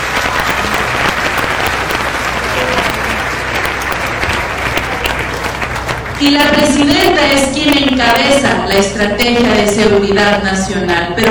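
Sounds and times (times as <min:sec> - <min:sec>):
audience applause: 0:00.0 - 0:08.2
speech: 0:06.2 - 0:11.2.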